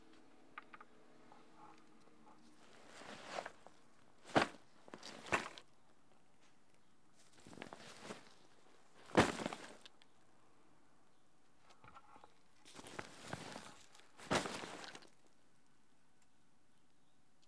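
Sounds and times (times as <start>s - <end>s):
backpack dropping: 2.8s - 5.6s, 7.4s - 8.4s, 9.0s - 9.9s, 12.8s - 15.1s.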